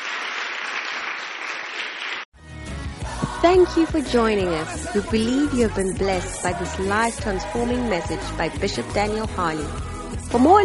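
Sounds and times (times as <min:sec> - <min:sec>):
audience hand clapping: 0:00.0 - 0:02.3
speech: 0:03.2 - 0:10.6.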